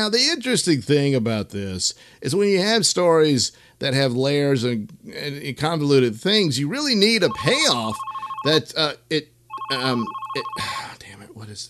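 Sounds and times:
speech: 0.0s - 11.6s
telephone ringing with an incoming call: 7.3s - 8.6s, 9.5s - 10.8s.

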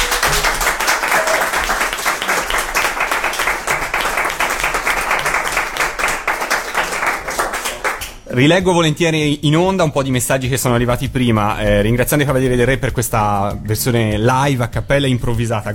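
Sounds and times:
audience applause: 0.0s - 8.1s
speech: 8.4s - 15.7s.

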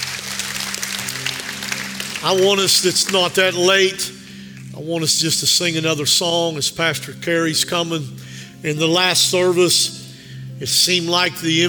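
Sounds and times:
audience clapping hands: 0.0s - 3.7s
speech: 2.2s - 4.2s, 4.8s - 10.0s, 10.6s - 11.6s.

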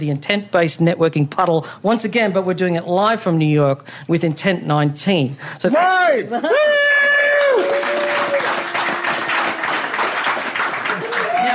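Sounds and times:
speech: 0.0s - 6.8s
audience applause: 6.6s - 11.5s.

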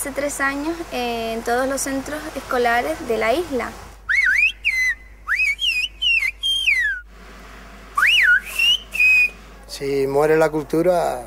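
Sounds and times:
speech: 0.0s - 3.9s, 9.8s - 11.2s
Canary Islands whistled language: 4.1s - 7.1s, 8.0s - 9.4s.

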